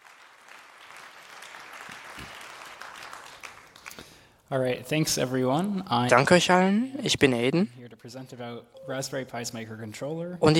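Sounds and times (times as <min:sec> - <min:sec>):
audience applause: 0:00.0 - 0:04.3
speech: 0:04.5 - 0:10.5.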